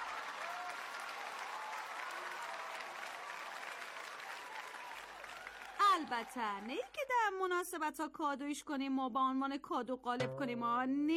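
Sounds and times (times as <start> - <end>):
whistles and cheers: 0.0 - 6.2
crowd applause: 0.0 - 6.8
speech: 6.0 - 11.1.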